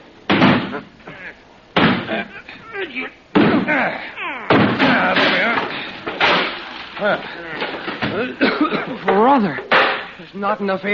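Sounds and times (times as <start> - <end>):
door rammed open with a shoulder: 0.3 - 0.8, 1.8 - 2.2, 4.5 - 8.3
speech: 0.7 - 1.5, 2.9 - 4.1, 9.4 - 10.9
men murmuring: 0.7 - 6.1, 6.8 - 9.7.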